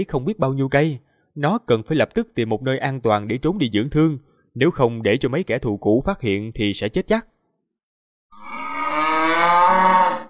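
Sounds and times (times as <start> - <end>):
speech: 0.0 - 7.3, 8.3 - 8.6
ox bellowing loudly: 8.4 - 10.2.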